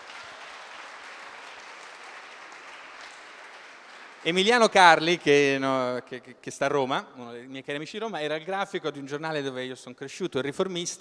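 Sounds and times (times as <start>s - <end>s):
audience applause: 0.0s - 5.4s
speech: 4.2s - 10.9s.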